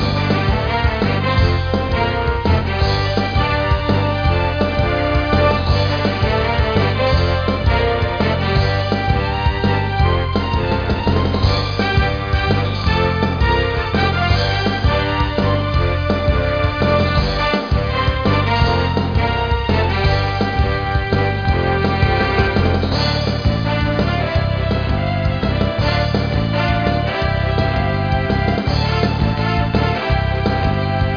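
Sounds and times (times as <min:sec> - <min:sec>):
theme music: 0:00.0 - 0:31.1.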